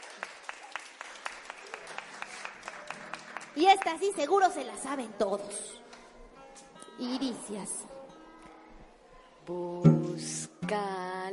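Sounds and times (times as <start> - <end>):
audience applause: 0.0 - 4.4
speech: 3.6 - 5.8, 7.0 - 7.9, 9.5 - 11.3.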